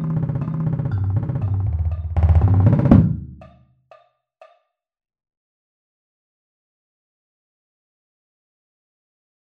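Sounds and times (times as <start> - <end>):
bass drum: 0.0 - 3.6.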